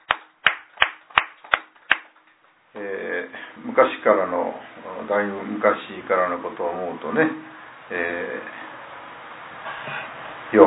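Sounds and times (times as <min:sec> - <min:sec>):
celebratory clapping for a child turning two: 0:00.0 - 0:02.2
speech: 0:02.8 - 0:08.6, 0:09.8 - 0:10.6.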